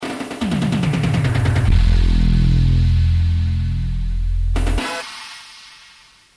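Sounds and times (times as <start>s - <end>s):
musical sting: 0.4s - 5.0s.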